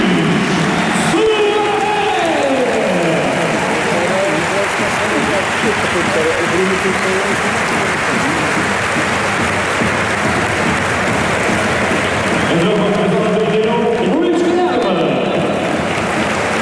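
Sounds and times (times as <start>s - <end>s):
people shouting: 0.0s - 5.1s
stadium crowd applauding a substituted player: 0.0s - 16.5s.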